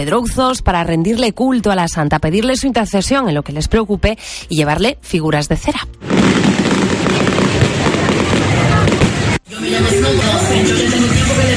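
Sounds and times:
speech: 0.0 - 6.4
fireworks display exploding: 6.0 - 10.8.

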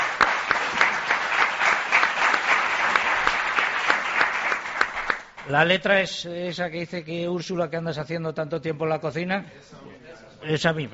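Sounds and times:
audience applause: 0.0 - 5.5
speech: 5.5 - 10.9.

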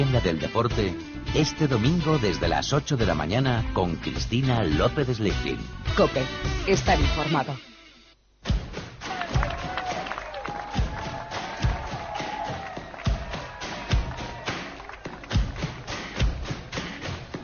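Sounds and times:
speech: 0.0 - 7.7
crowd ovation for passing cyclists: 9.0 - 17.4.

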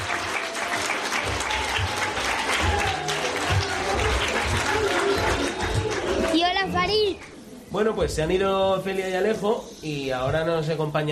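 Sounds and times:
audience applause: 0.0 - 7.4
speech: 7.8 - 11.1.

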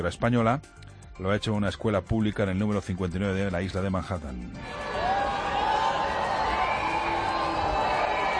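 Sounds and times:
speech: 0.0 - 4.9
crowd booing at arrival at school: 4.6 - 8.3.

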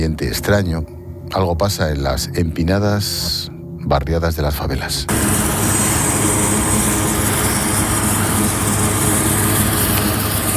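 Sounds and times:
speech: 0.0 - 5.6
helicopters flying overhead: 5.1 - 10.5.

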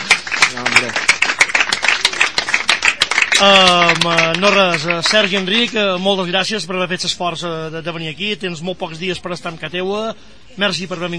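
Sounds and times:
small group clapping for a guest: 0.0 - 6.0
speech: 3.4 - 11.1.

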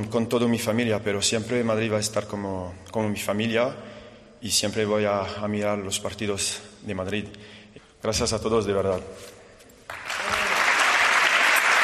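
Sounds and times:
speech: 0.0 - 9.4
farewell applause for Karim Benzema at a small private event: 9.9 - 11.8.

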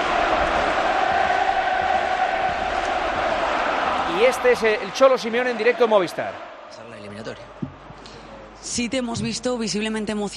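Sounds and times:
stadium crowd of football fans at Wanda Metropolitano roaring: 0.0 - 8.0
speech: 4.2 - 7.7, 8.6 - 10.3.

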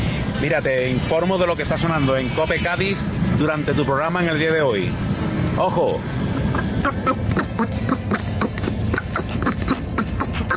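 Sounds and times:
speech: 0.4 - 8.0
cartoon duck-like quacking voice: 6.4 - 10.5.

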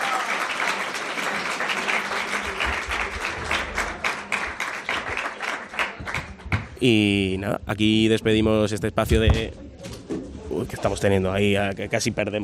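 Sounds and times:
applause: 0.0 - 6.8
speech: 6.8 - 9.6, 10.7 - 12.4.

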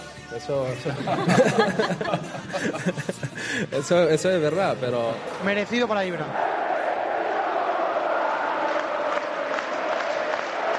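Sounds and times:
speech: 0.3 - 6.6
laughter: 0.7 - 3.8
football stadium crowd in the home end stand cheering and applauding: 4.4 - 10.7.

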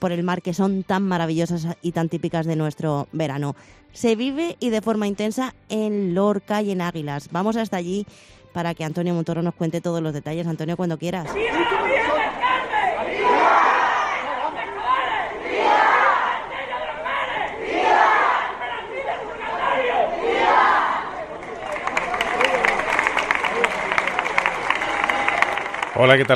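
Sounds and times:
speech: 0.0 - 12.3, 26.0 - 26.3
large crowd shouting cheers of viva: 11.3 - 26.3
rapid steady clapping: 21.2 - 26.3.

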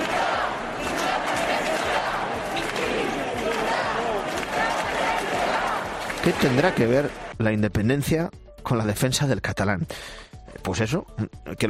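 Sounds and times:
crowd shouting and chanting at a protest: 0.0 - 7.3
speech: 6.3 - 11.6.

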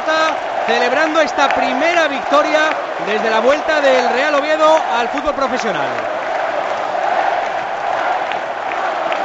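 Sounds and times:
large stadium crowd of football fans applauding: 0.0 - 9.2
speech: 0.7 - 6.1.

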